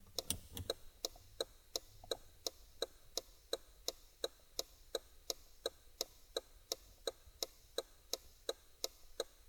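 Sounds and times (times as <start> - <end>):
car indicator ticking: 0.0 - 7.2.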